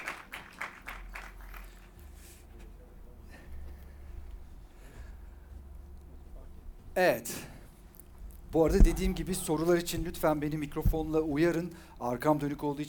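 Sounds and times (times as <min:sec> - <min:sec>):
audience applause: 0:00.0 - 0:02.2
speech: 0:07.0 - 0:07.5, 0:08.5 - 0:12.8.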